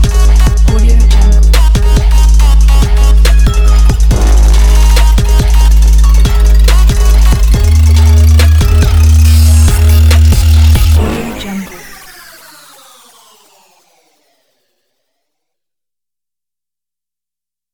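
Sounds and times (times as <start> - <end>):
workout music: 0.0 - 13.5.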